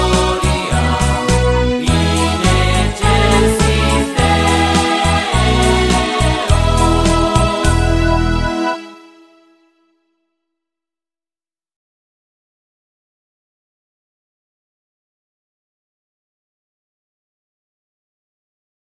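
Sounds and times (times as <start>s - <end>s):
music medley: 0.0s - 10.1s.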